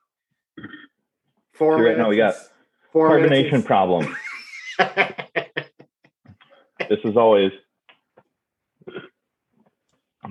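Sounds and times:
burp: 0:00.6 - 0:01.0, 0:08.8 - 0:09.2
speech: 0:01.6 - 0:04.2, 0:04.8 - 0:05.2, 0:07.0 - 0:07.6
laughter: 0:03.0 - 0:07.0.

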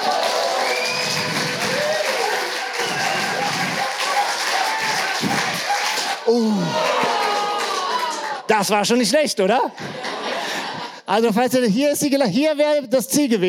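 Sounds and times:
crowd cheering and shouting: 0:00.0 - 0:08.5
speech: 0:06.3 - 0:06.8, 0:08.5 - 0:10.1, 0:11.1 - 0:13.4.

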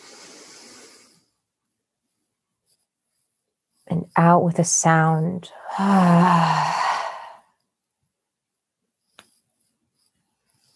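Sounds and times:
slow deep breath drawn in: 0:00.0 - 0:01.3, 0:05.6 - 0:07.5
speech: 0:03.9 - 0:06.8.

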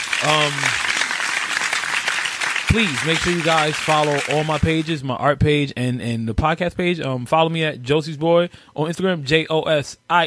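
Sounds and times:
hand clapping: 0:00.0 - 0:04.9
speech: 0:00.2 - 0:00.9, 0:02.7 - 0:10.2.

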